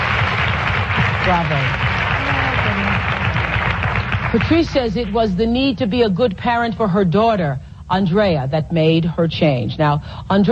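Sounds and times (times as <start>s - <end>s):
applause: 0.0s - 5.1s
speech: 1.3s - 1.9s, 4.4s - 10.5s.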